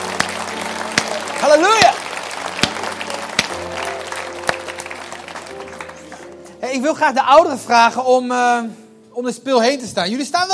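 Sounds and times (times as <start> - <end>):
audience applause: 0.0 - 6.6
speech: 1.4 - 2.0, 6.7 - 10.5.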